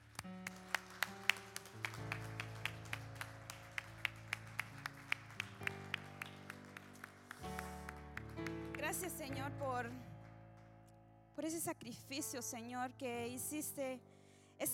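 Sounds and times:
audience clapping in rhythm: 0.0s - 10.9s
sustained keyboard chords: 0.0s - 11.4s
speech: 9.0s - 10.1s, 11.4s - 14.7s.

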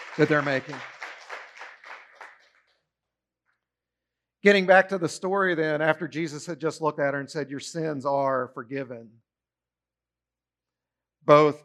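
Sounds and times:
congregation clapping at a church service: 0.0s - 2.8s
speech: 0.2s - 0.9s, 4.4s - 9.2s, 11.2s - 11.6s.

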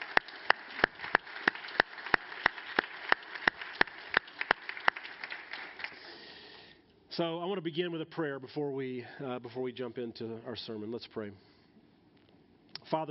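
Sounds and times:
audience applause: 0.0s - 6.3s
speech: 7.2s - 11.5s.

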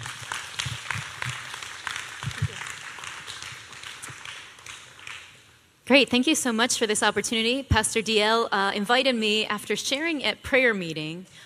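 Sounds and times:
worship congregation clapping to welcome a speaker: 0.0s - 5.5s
speech: 5.9s - 11.4s.

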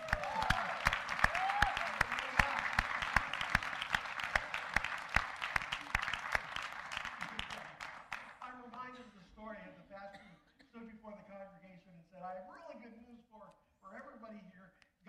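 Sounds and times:
audience applause: 0.0s - 8.8s.

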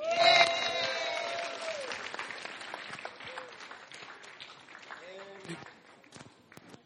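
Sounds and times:
whooping cheers: 0.0s - 2.2s
audience applause: 0.0s - 6.1s.

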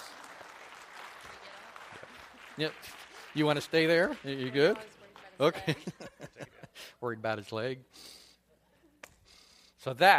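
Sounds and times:
audience applause: 0.0s - 5.3s
speech: 2.6s - 6.2s, 7.0s - 8.2s, 9.8s - 10.1s
laughter: 5.5s - 6.9s.

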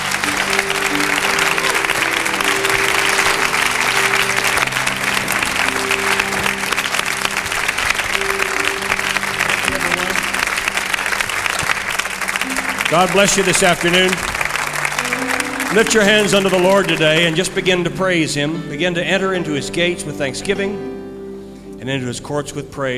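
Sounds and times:
crowd applauding to welcome a speaker: 0.0s - 18.6s
sustained low musical notes: 0.0s - 22.9s
speech: 12.9s - 14.3s, 15.7s - 20.9s, 21.8s - 22.9s.

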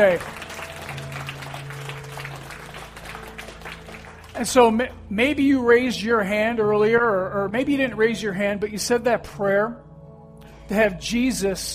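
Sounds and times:
speech: 0.0s - 0.4s, 4.4s - 9.9s, 10.7s - 11.7s
audience applause: 0.0s - 4.6s.

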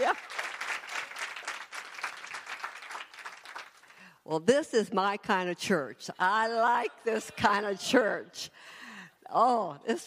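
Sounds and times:
audience applause: 0.0s - 3.9s
speech: 4.3s - 10.0s.

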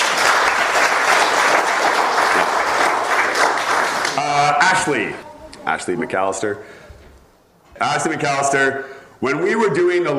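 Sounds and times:
crowd applause: 0.0s - 5.0s
speech: 4.8s - 6.8s, 7.8s - 10.1s.

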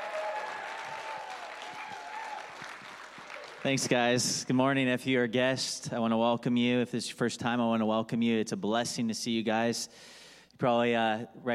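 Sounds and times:
audience hand clapping: 0.0s - 4.6s
speech: 3.6s - 11.5s.

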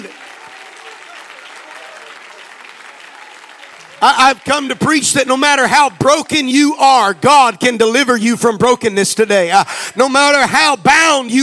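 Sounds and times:
audience clapping hands: 0.0s - 7.2s
speech: 4.0s - 11.4s.

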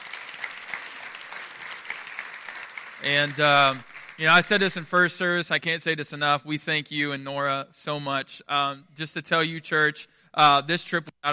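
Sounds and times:
audience applauding: 0.0s - 5.1s
speech: 3.0s - 11.3s.

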